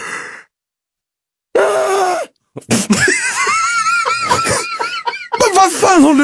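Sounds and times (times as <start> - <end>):
person imitating loud shrieking yawn: 1.5 - 2.4
laughter: 2.6 - 6.2.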